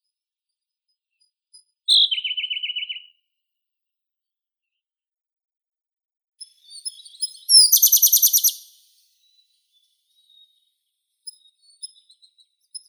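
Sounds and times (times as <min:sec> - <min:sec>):
Siberian blue robin Luscinia cyane singing: 0:01.9 - 0:03.1, 0:06.4 - 0:12.8.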